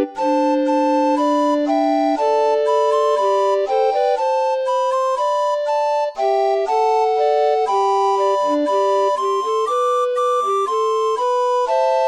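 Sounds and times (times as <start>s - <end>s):
barrel organ melody: 0.0s - 12.0s.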